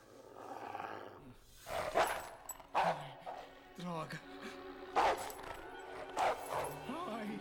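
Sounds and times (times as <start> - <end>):
dog growling: 0.1 - 3.4, 5.0 - 6.8
dog barking: 1.8 - 3.4, 5.0 - 5.4, 6.0 - 6.8
speech: 4.1 - 4.3.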